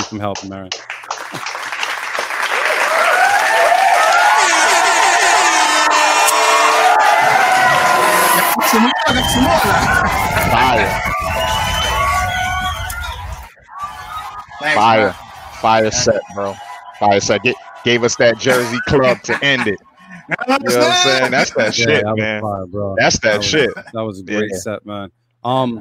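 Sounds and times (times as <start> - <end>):
audience clapping: 0.0 - 20.0
speech: 0.1 - 1.7, 8.7 - 11.7, 14.6 - 19.9, 20.5 - 25.8
audience cheering: 1.1 - 22.0, 23.2 - 24.6
laughter: 2.6 - 12.2, 13.7 - 22.2, 23.0 - 24.8.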